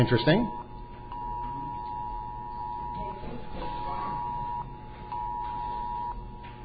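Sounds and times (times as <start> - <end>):
phone emergency alert test tone: 0.0 - 3.0, 3.6 - 6.2
faint voices: 1.2 - 6.1.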